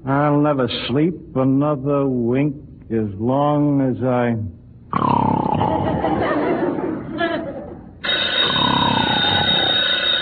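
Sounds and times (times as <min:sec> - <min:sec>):
speech: 0:00.1 - 0:05.4
laughter: 0:05.6 - 0:07.9
telephone bell ringing: 0:08.0 - 0:10.1.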